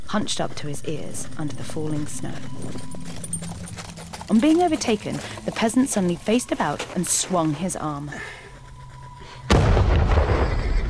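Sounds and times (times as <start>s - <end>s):
low hum: 0.0s - 10.4s
speech: 0.1s - 3.2s, 4.3s - 8.4s
muffled bomb detonation: 9.5s - 10.8s.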